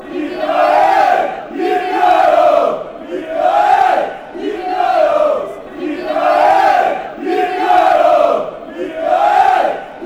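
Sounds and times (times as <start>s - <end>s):
fans chanting: 0.0s - 10.0s.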